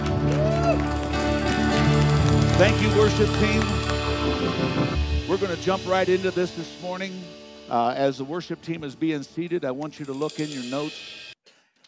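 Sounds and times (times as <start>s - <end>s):
audience clapping: 0.0s - 5.0s
speech: 2.6s - 3.9s, 4.5s - 11.2s.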